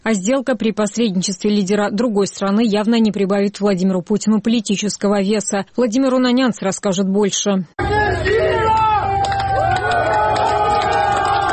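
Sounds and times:
speech: 0.0s - 8.9s
large crowd chanting: 7.8s - 11.5s
clapping: 8.6s - 11.5s.

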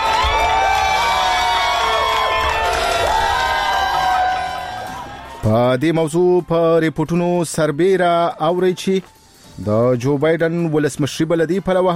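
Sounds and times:
crowd in America cheering the announcement of Biden's win: 0.0s - 5.8s
speech: 5.4s - 11.9s.

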